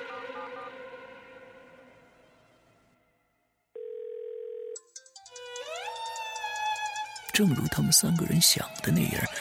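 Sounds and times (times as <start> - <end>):
mobile phone ringtone: 3.8 - 5.2
speech: 7.4 - 9.3.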